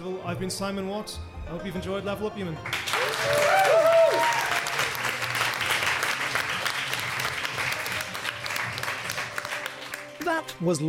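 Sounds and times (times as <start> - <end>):
speech: 0.3 - 3.7, 10.6 - 10.8
festival audience at Imperial Festival applauding: 2.6 - 10.6
high whoops: 2.9 - 4.8.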